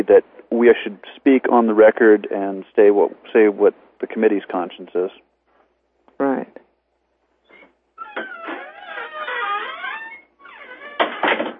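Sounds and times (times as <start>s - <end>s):
speech: 0.0s - 5.3s
door creaking open with squealing hinges: 7.5s - 11.5s.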